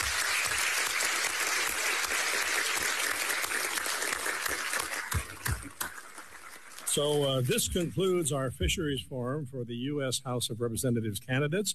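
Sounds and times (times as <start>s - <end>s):
audience applause for candidates: 0.0s - 8.0s
speech: 6.9s - 11.7s.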